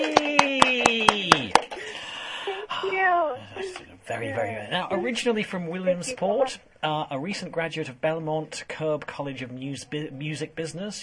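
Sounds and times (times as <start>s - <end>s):
person cheering: 0.0s - 1.6s
rhythmic hand claps: 0.0s - 2.0s
speech: 4.1s - 11.0s.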